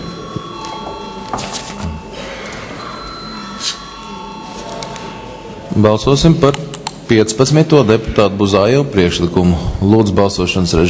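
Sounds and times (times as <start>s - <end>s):
parliamentary voting bell ringing: 0.0s - 6.7s
speech: 5.8s - 10.8s.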